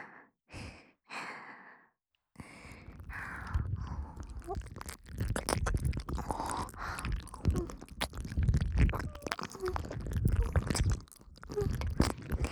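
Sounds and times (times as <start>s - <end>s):
ASMR ear licking in the right ear: 2.7s - 12.5s.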